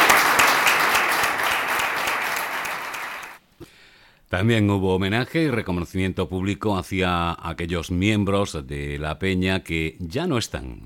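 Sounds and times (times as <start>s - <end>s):
audience applause: 0.0s - 3.4s
speech: 4.3s - 10.8s.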